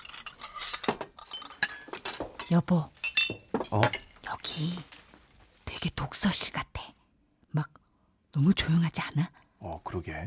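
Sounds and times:
spoons and cutlery clinking: 0:00.0 - 0:04.1
speech: 0:02.5 - 0:03.0, 0:03.7 - 0:04.9, 0:05.8 - 0:06.8, 0:08.4 - 0:10.2.

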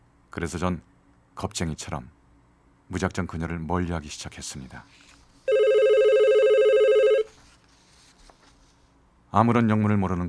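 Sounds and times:
speech: 0:00.4 - 0:02.2, 0:02.9 - 0:05.1, 0:09.3 - 0:10.2
telephone ringing: 0:05.5 - 0:07.3.

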